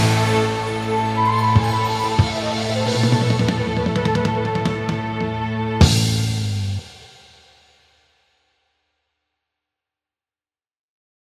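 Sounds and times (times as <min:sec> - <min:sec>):
piano: 0:00.0 - 0:06.0
orchestra playing: 0:00.0 - 0:06.9.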